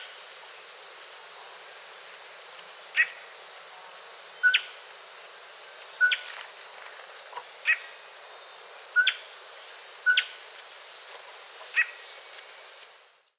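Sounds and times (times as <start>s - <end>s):
cloud forest bird call and contact calls in Costa Rica: 5.9s - 6.3s, 7.3s - 8.0s, 9.0s - 10.4s, 11.6s - 12.2s.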